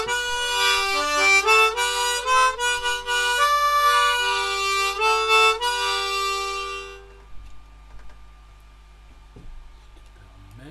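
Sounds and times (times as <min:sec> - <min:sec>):
armonica: 0:00.0 - 0:07.3.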